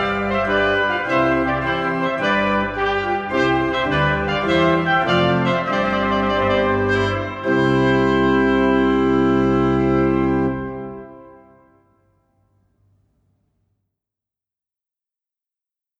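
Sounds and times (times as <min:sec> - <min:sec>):
trumpet piece: 0:00.0 - 0:12.1.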